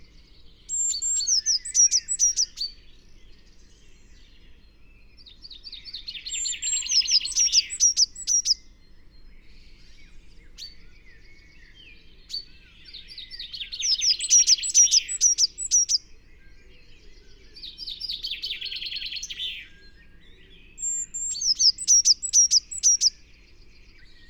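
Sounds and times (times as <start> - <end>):
Eurasian blue tit Cyanistes caeruleus giving rapid bursts of high thin chirps: 0.7 - 2.8, 5.9 - 8.6, 12.3 - 16.1, 17.7 - 19.7, 20.7 - 23.3.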